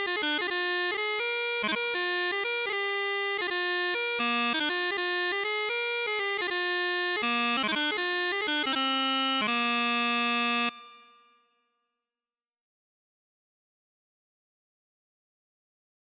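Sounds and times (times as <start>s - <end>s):
bagpipe chanter: 0.0s - 11.1s.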